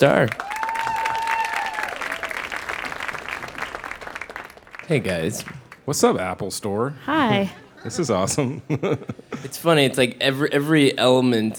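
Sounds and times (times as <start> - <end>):
speech: 0.0 - 0.5, 4.9 - 11.5
audience at an Apple Store event clapping: 0.0 - 6.3
laughter: 0.0 - 11.5.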